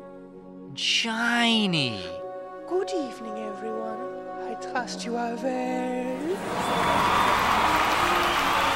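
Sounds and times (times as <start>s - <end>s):
speech: 0.8s - 2.1s, 2.7s - 7.7s
lively crowd cheering and applauding: 6.3s - 8.7s.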